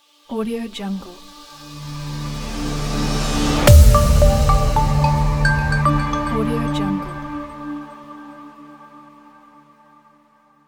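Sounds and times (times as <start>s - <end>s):
crystal logo sound: 1.5s - 7.9s.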